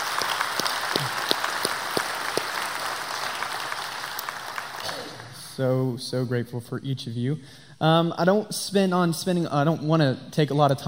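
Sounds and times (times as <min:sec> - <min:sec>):
audience clapping: 0:00.0 - 0:05.4
speech: 0:05.6 - 0:10.8.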